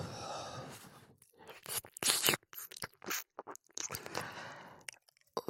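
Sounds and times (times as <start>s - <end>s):
ASMR ear kissing: 1.5s - 4.3s
ASMR ear licking: 1.5s - 5.3s.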